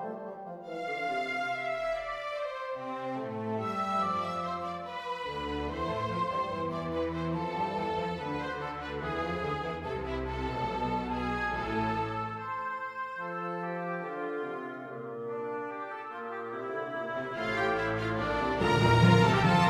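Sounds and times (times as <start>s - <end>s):
orchestral music: 0.1s - 12.8s, 13.9s - 19.6s.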